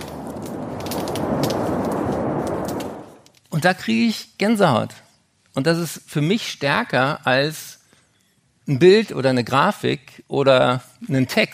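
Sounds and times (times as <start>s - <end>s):
waves over dead coral reef: 0.0s - 3.1s
wind over dead coral reef: 0.0s - 11.5s
speech: 3.6s - 5.0s, 5.6s - 7.8s, 8.7s - 11.5s.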